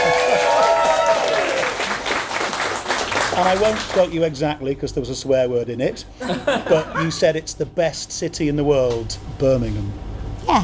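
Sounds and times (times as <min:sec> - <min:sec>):
voices and whoops in a pub: 0:00.0 - 0:02.0
pub crowd applauding: 0:00.0 - 0:04.2
speech: 0:03.4 - 0:10.6
laughter: 0:06.2 - 0:07.4.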